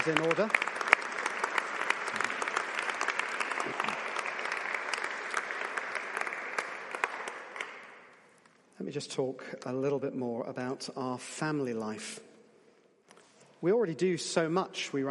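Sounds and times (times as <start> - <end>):
speech: 0.0 - 0.8, 8.9 - 12.3, 13.6 - 15.0
audience applause: 0.0 - 8.1.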